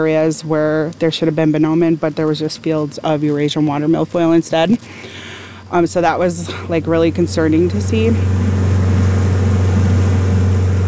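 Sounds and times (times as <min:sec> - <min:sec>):
speech: 0:00.0 - 0:08.7
boat motors droning on Leech Lake on a warm August day: 0:05.1 - 0:10.8.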